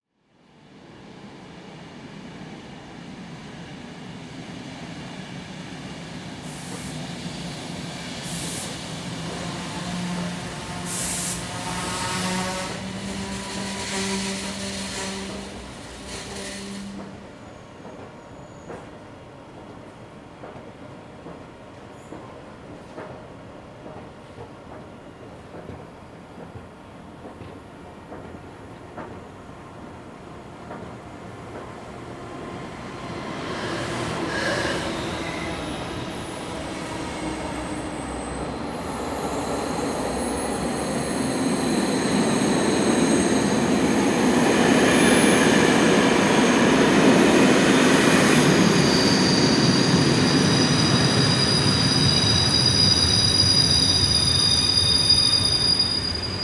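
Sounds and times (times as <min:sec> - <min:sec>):
railway station ambience: 0:00.2 - 0:56.4.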